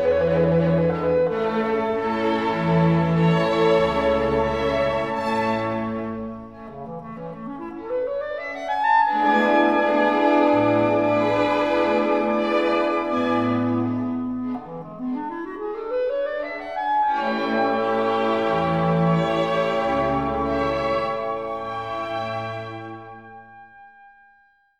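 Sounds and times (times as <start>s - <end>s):
classical clarinet excerpt: 0.0s - 24.7s.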